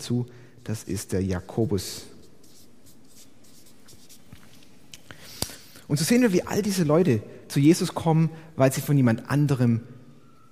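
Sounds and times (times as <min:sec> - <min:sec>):
speech: 0:00.0 - 0:02.1, 0:05.9 - 0:10.0
writing on a board during a Bible lesson: 0:02.2 - 0:04.6.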